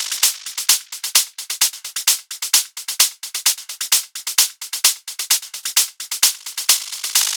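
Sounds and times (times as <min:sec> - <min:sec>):
techno hi-hat loop: 0:00.0 - 0:07.3.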